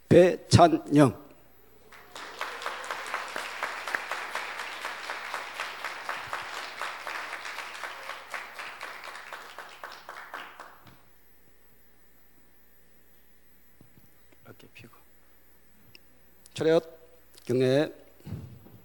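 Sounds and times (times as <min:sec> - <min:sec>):
speech: 0:00.1 - 0:01.2, 0:16.6 - 0:18.4
audience applause: 0:01.8 - 0:11.0.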